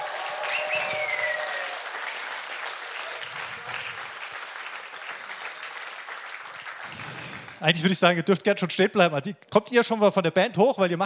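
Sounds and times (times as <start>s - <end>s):
people cheering: 0.0s - 7.8s
people clapping: 0.0s - 8.1s
speech: 7.6s - 11.0s.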